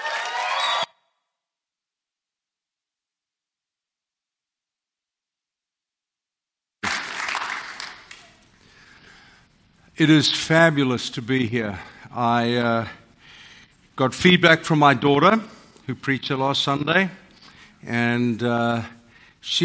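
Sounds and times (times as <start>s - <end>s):
audience applause: 0.0s - 0.9s, 6.8s - 8.4s
speech: 10.0s - 13.0s, 14.0s - 17.2s, 17.8s - 19.6s.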